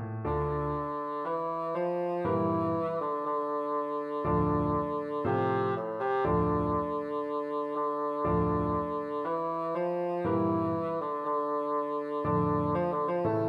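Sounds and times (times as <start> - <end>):
bassoon: 0.2 - 13.4.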